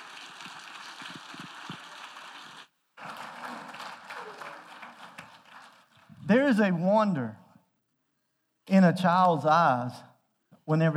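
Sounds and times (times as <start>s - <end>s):
audience applause: 0.0s - 6.2s
speech: 6.3s - 7.4s, 8.8s - 10.1s, 10.7s - 10.9s.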